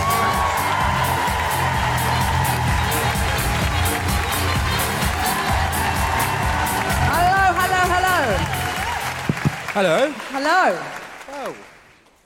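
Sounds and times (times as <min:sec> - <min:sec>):
crowd cheering, whooping and shouting: 0:00.0 - 0:09.5
crowd clapping: 0:00.0 - 0:12.2
speech: 0:09.8 - 0:11.6.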